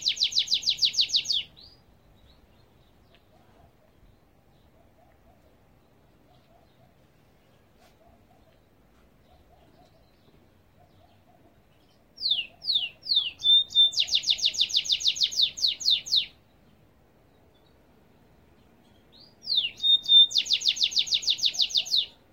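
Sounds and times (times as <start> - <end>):
goldfinch twittering song: 0.0 - 3.0, 11.8 - 16.4, 18.9 - 22.2.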